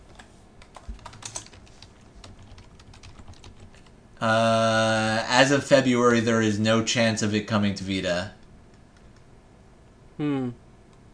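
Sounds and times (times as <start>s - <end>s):
typing on a computer keyboard: 0.1s - 3.9s
speech: 4.2s - 4.8s, 5.4s - 8.4s, 10.2s - 10.6s.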